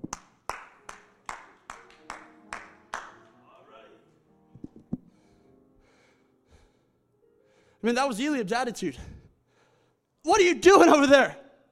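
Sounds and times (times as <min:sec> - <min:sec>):
audience clapping: 0:00.0 - 0:03.4
speech: 0:07.8 - 0:09.1, 0:10.2 - 0:11.4.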